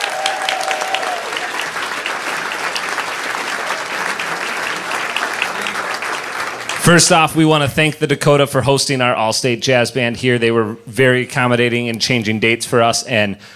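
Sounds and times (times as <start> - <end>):
audience clapping at the Dakota for a student all-state jazz band: 0.0 - 7.6
speech: 6.9 - 13.5.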